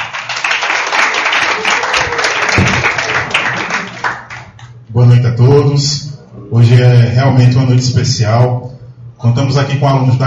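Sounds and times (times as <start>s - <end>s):
audience applause: 0.0s - 4.6s
speech: 5.0s - 10.2s.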